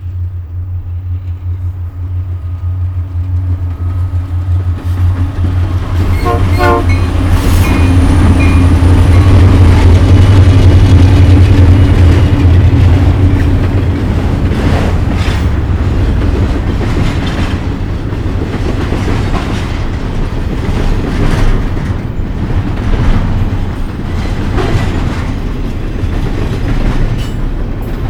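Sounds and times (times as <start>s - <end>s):
train: 0.0s - 28.0s.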